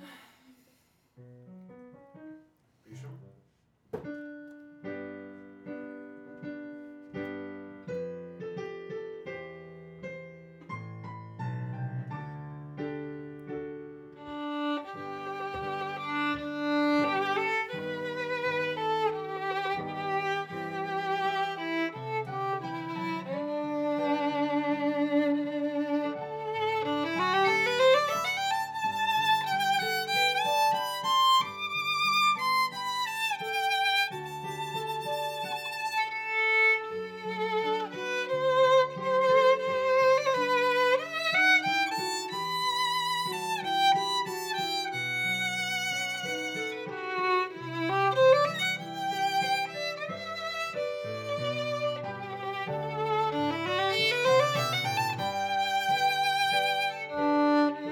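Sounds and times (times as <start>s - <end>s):
viola playing in C minor: 14.1s - 57.8s.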